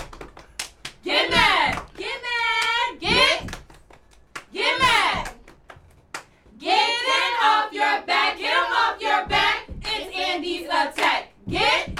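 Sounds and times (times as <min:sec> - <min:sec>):
cheer squad hand claps: 0:00.0 - 0:06.5, 0:11.0 - 0:11.9
cheer squad chanting a cheer: 0:01.0 - 0:03.5, 0:04.5 - 0:05.4, 0:06.5 - 0:11.9.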